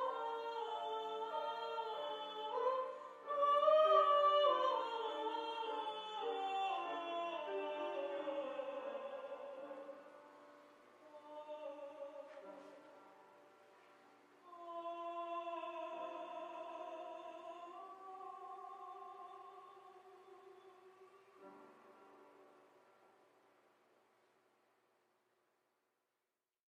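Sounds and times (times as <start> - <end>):
opera singing: 0.0 - 10.4, 11.0 - 13.2, 14.4 - 22.2.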